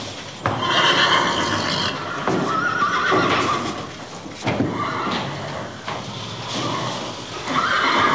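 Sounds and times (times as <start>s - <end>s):
horse whinnying: 0.6s - 3.9s, 4.7s - 5.8s, 6.6s - 8.1s.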